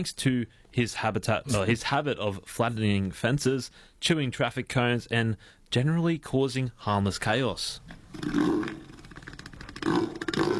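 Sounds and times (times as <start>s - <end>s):
speech: 0.0s - 8.9s
southern elephant seal grunting: 8.1s - 10.5s.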